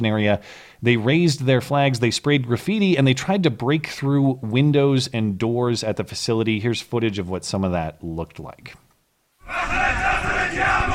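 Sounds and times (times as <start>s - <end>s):
speech: 0.0s - 8.8s
crowd chanting and shouting at embassy siege: 9.4s - 10.9s.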